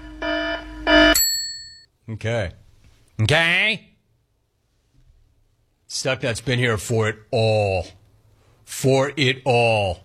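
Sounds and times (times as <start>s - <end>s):
alarm going off: 0.0s - 1.4s
speech: 2.1s - 2.6s, 3.2s - 3.9s, 5.9s - 8.0s, 8.7s - 10.0s.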